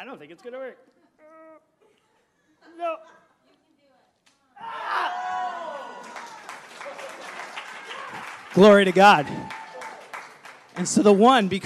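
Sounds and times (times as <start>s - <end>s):
speech: 0.1s - 1.3s, 2.6s - 3.2s, 4.6s - 5.6s, 8.6s - 9.6s, 10.8s - 11.6s
audience applause: 5.1s - 11.6s.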